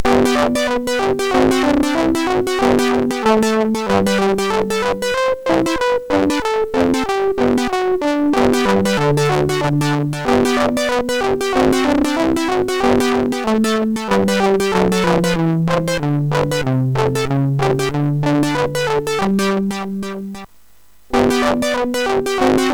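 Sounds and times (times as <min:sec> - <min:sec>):
SID MOS6581R4 chip instrumental music: 0:00.0 - 0:20.5, 0:21.1 - 0:22.7.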